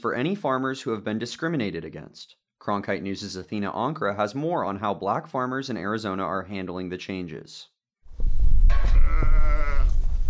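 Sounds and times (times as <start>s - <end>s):
speech: 0.0s - 8.4s
sheep bleating in a pen at feeding time on an Arizona ranch: 8.8s - 10.1s.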